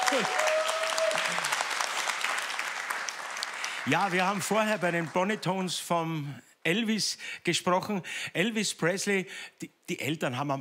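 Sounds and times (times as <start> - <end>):
audience applause: 0.0 - 5.7
speech: 0.1 - 0.4, 3.9 - 10.6.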